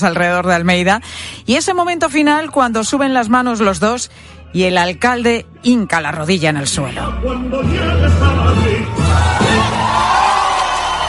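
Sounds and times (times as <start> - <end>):
speech: 0.0 - 10.1
ovation from wedding guests: 8.8 - 11.0.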